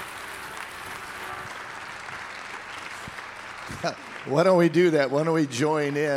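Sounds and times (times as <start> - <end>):
audience clapping hands: 0.0 - 6.1
speech: 3.8 - 6.1.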